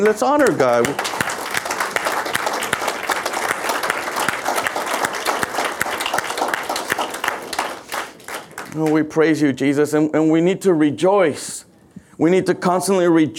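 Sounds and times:
speech: 0.0 - 1.1, 8.8 - 13.3
audience clapping: 0.0 - 9.2.

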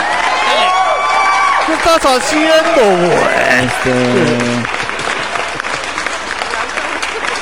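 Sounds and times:
crowd applause sound effect: 0.0 - 7.4
speech: 1.9 - 4.8.

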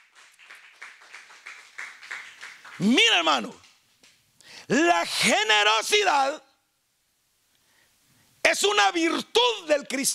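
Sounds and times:
audience clapping hands in a steady rhythmic beat: 0.0 - 4.2
speech: 2.8 - 3.6, 4.7 - 6.5, 8.5 - 10.1.

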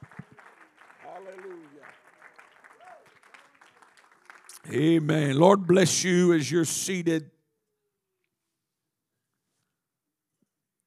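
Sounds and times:
audience clapping hands in praise: 0.0 - 6.6
speech: 1.2 - 2.1, 4.7 - 7.3.

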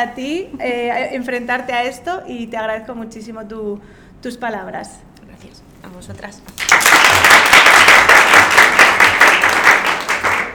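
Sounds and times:
speech: 0.0 - 7.6
small group applauding: 6.5 - 10.5.

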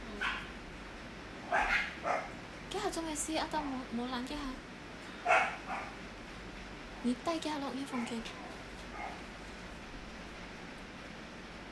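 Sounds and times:
dogs barking: 0.2 - 0.6, 1.4 - 2.4, 5.2 - 6.0, 7.8 - 9.3
speech: 3.0 - 4.7, 7.0 - 8.4.

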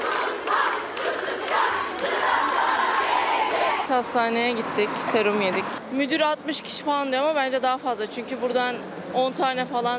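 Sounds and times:
crowd of young people shouting and chanting in protest: 0.0 - 3.9
speech: 3.9 - 9.9.

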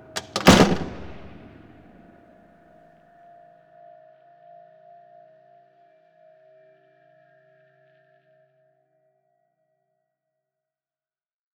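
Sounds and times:
metal door slamming shut: 0.2 - 1.9.

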